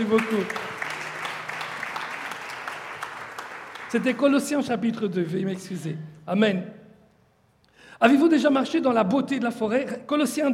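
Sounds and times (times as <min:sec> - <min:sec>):
speech: 0:00.0 - 0:00.8, 0:03.9 - 0:06.8, 0:08.0 - 0:10.5
audience applause: 0:00.0 - 0:04.6.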